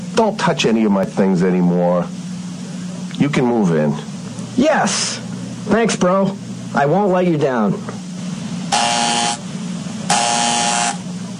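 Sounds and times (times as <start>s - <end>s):
speech: 0.2s - 2.2s, 3.2s - 8.0s
electric doorbell buzzer: 8.7s - 9.5s, 10.1s - 11.1s.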